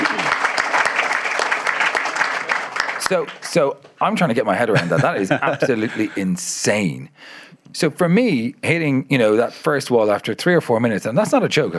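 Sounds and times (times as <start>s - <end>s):
crowd applauding: 0.0s - 3.7s
speech: 3.1s - 11.7s
laughter: 4.7s - 6.3s.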